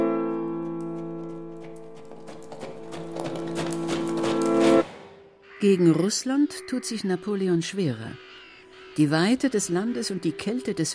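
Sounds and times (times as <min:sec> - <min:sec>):
horse hooves of the French emperor and guard passing Brandenburg Gate: 0:00.0 - 0:05.1
speech: 0:05.6 - 0:08.3, 0:09.0 - 0:10.9.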